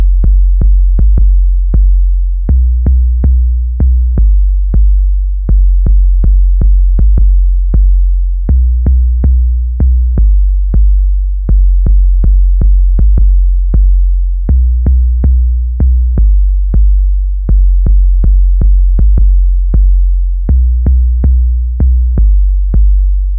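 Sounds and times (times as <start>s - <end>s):
bass sequence: 0.0s - 23.3s.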